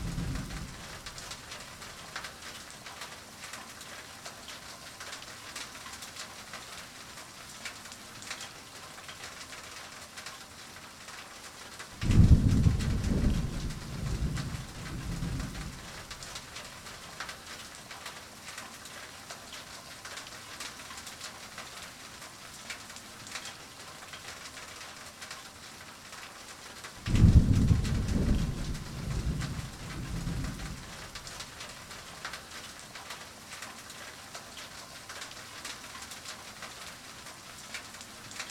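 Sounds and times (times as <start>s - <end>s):
thunder: 0.0s - 1.4s, 12.0s - 16.4s, 27.0s - 31.4s
rain heard indoors: 0.0s - 38.4s.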